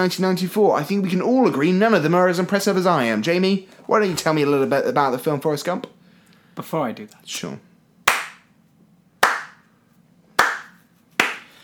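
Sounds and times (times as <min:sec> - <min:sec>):
speech: 0:00.0 - 0:06.0, 0:06.6 - 0:07.7
clapping: 0:08.1 - 0:08.5, 0:09.2 - 0:09.7, 0:10.4 - 0:11.6.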